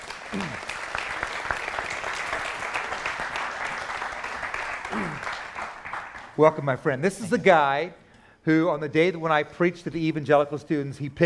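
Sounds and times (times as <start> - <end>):
audience applauding as two guests come on stage: 0.0 - 6.4
speech: 0.3 - 0.7, 6.4 - 11.2.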